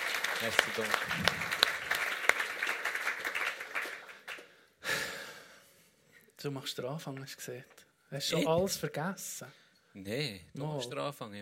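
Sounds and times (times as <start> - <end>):
audience applause at a live show at the Landhaus Adler in Frutigen: 0.0 - 4.6
speech: 0.4 - 1.7, 6.4 - 11.4.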